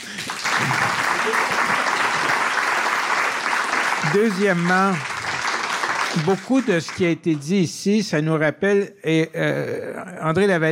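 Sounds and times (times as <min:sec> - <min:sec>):
audience applause: 0:00.0 - 0:07.2
speech: 0:04.1 - 0:05.1, 0:06.1 - 0:10.7.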